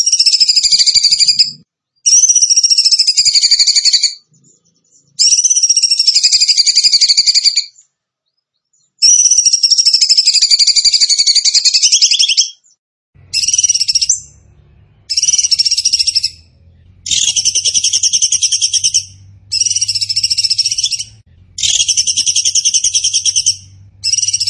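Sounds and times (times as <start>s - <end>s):
bird buzzy trilled song: 0.0s - 24.4s
faint low noise: 13.2s - 24.4s.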